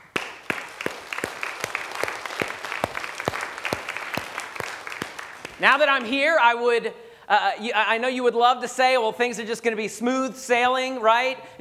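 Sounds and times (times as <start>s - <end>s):
audience applauding: 0.0s - 6.1s
speech: 5.6s - 11.5s.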